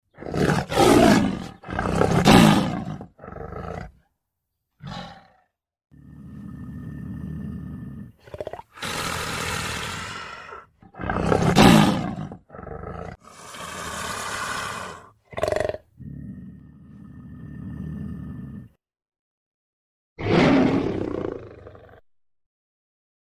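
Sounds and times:
lion roaring: 0:00.1 - 0:04.0, 0:04.8 - 0:18.8, 0:20.2 - 0:22.0.

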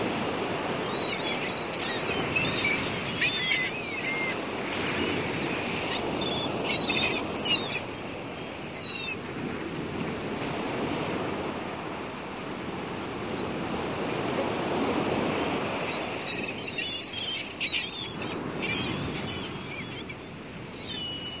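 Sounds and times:
loud continuous surf: 0:00.0 - 0:21.3
gulls screaming: 0:00.7 - 0:09.2, 0:13.4 - 0:21.3.

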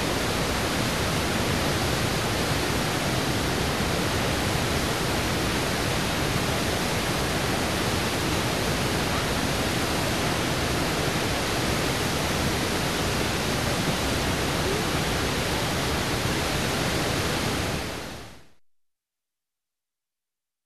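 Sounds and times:
Niagara waterfall: 0:00.0 - 0:18.4.

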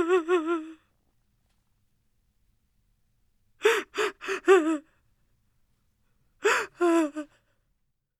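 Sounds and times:
girl sobbing: 0:00.0 - 0:00.9, 0:03.6 - 0:04.9, 0:06.4 - 0:07.4.

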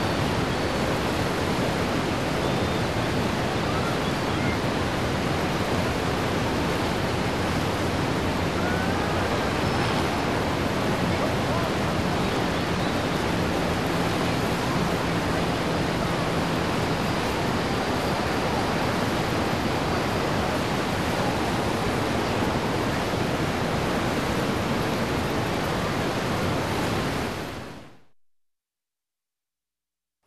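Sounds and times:
waterfall: 0:00.0 - 0:28.0.

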